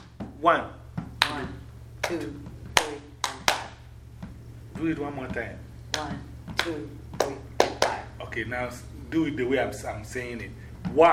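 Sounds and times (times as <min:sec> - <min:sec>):
group hand claps practising a counted rhythm: 0:00.0 - 0:00.2, 0:01.2 - 0:03.8, 0:05.9 - 0:08.2
faint steady hum: 0:00.0 - 0:11.1
speech: 0:00.4 - 0:02.5, 0:04.8 - 0:07.5, 0:08.2 - 0:11.1.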